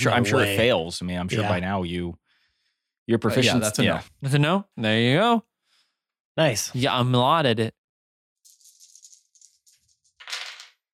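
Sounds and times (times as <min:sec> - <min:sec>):
speech: 0:00.0 - 0:02.2, 0:03.1 - 0:05.5, 0:06.4 - 0:07.8
handful of dice rattling and clattering: 0:08.5 - 0:10.8.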